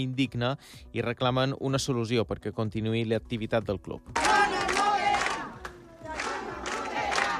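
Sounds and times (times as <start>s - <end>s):
speech: 0.0s - 4.7s
protesting neighbours chanting outside a centre: 4.2s - 7.3s.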